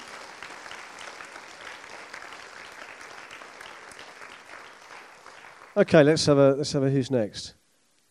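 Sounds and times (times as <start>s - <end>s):
audience clapping: 0.0s - 6.4s
speech: 5.8s - 7.6s.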